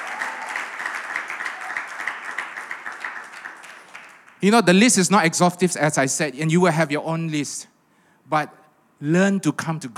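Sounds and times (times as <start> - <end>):
audience clapping: 0.0 - 4.4
speech: 4.4 - 7.7, 8.3 - 9.9.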